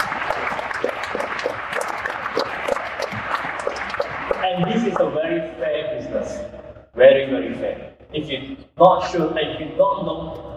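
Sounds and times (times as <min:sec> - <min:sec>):
crowd applause: 0:00.0 - 0:05.1
speech: 0:05.0 - 0:09.6.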